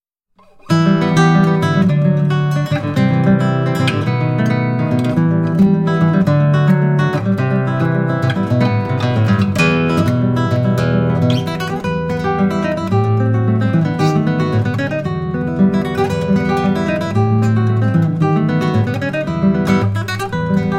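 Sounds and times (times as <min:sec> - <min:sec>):
Cuban popular dance music on guitar: 0:00.4 - 0:20.7.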